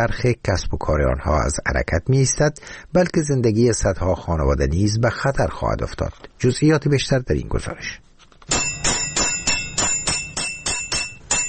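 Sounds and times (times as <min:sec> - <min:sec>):
speech: 0:00.0 - 0:08.6
hammer striking tin sheet in workshop: 0:08.5 - 0:11.4.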